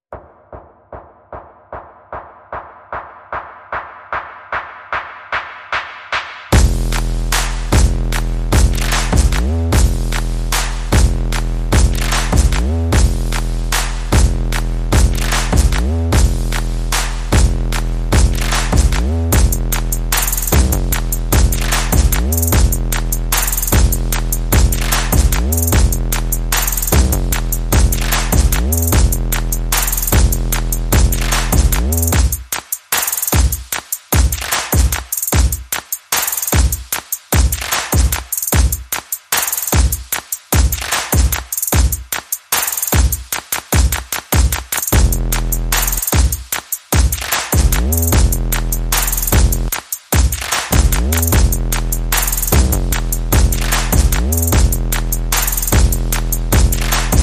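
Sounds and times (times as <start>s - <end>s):
percussion: 0.0s - 57.2s
bass: 6.5s - 32.1s, 45.0s - 46.0s, 47.6s - 49.7s, 50.8s - 57.2s.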